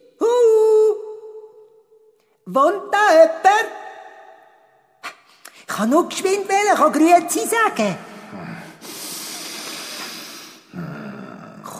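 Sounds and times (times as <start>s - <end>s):
speech: 2.5s - 3.8s, 5.8s - 8.1s
person snorting heavily: 8.2s - 11.7s.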